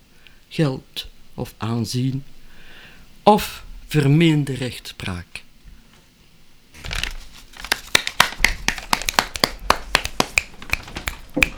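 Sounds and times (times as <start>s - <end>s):
speech: 0.5s - 2.4s, 3.2s - 5.4s
audience finger snapping as applause: 7.9s - 11.5s.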